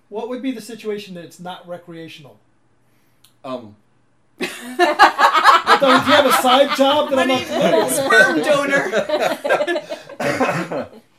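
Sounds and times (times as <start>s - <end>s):
speech: 0.1s - 2.5s, 3.4s - 3.8s, 4.4s - 11.0s
laughter: 4.4s - 11.0s
person coughing: 10.1s - 10.9s.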